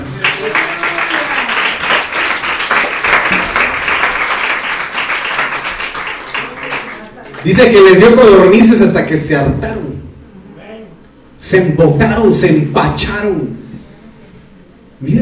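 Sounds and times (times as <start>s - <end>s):
audience applauding: 0.0s - 8.2s
speech: 7.4s - 9.8s, 11.4s - 13.6s.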